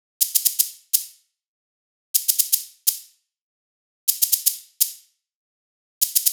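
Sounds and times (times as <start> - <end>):
percussion: 0.2 - 1.2, 2.2 - 3.1, 4.1 - 5.1, 6.0 - 6.3.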